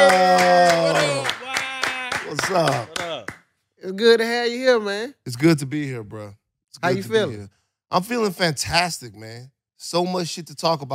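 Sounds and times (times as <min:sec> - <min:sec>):
people clapping: 0:00.0 - 0:03.5
speech: 0:02.6 - 0:02.9, 0:04.0 - 0:10.9.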